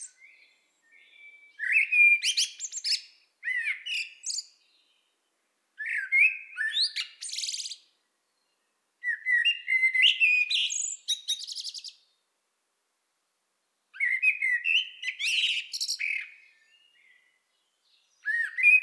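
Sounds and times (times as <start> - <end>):
common blackbird song: 0.0 - 12.2, 13.6 - 18.8.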